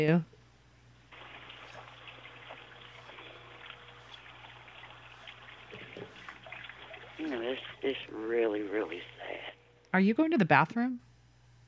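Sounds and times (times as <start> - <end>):
speech: 0.0 - 0.3, 7.2 - 11.1
running tap water as someone washes hands: 1.1 - 9.2.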